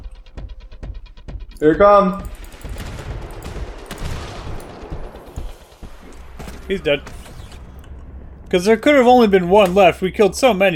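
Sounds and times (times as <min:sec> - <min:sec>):
rumbling low background: 0:00.0 - 0:10.7
speech: 0:01.6 - 0:02.4, 0:06.7 - 0:07.2, 0:08.5 - 0:10.7
gunfire from a gun in the video game GTFO: 0:02.2 - 0:07.8.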